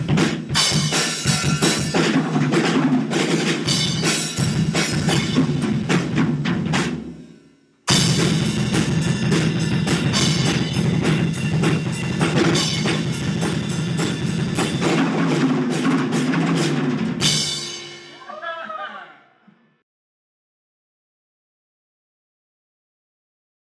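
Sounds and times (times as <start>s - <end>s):
drum solo: 0.0s - 18.4s
laughter: 18.2s - 19.6s.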